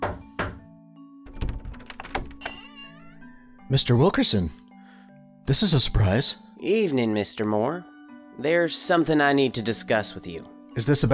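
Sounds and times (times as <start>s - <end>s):
firm hollow knocks on a door: 0.0s - 0.7s
speech: 3.7s - 4.6s, 5.5s - 11.1s.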